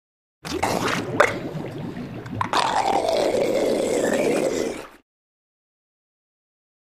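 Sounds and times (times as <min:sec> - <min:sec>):
seal roaring: 0:00.5 - 0:05.0.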